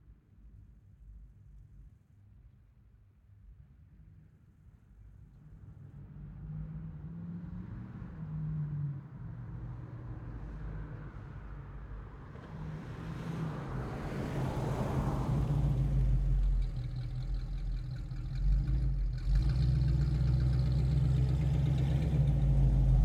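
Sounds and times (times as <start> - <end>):
1970 Ford Mustang Mach 1 V8 passing by: 6.2 - 23.0
1970 Ford Mustang Mach 1 V8 fast start accelerating away: 12.7 - 23.0
1970 Ford Mustang Mach 1 V8 engine revving: 16.4 - 23.0.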